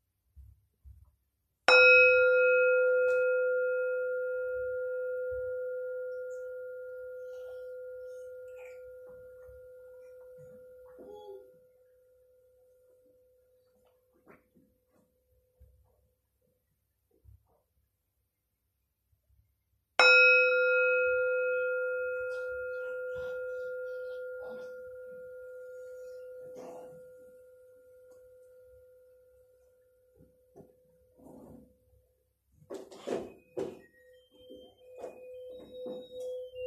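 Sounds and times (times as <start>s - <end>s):
meditation bell ringing: 1.7s - 12.7s, 20.0s - 30.2s, 33.4s - 36.6s.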